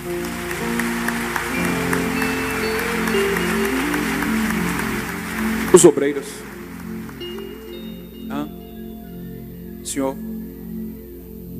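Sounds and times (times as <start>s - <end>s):
audience applause: 0.0s - 8.2s
sustained keyboard or organ chords: 0.0s - 11.5s
speech: 5.7s - 6.6s, 10.0s - 10.3s.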